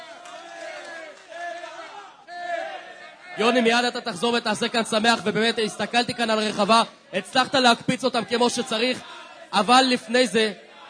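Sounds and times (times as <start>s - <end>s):
crowd applause and cheering: 0.0s - 2.8s
speech: 3.4s - 10.6s.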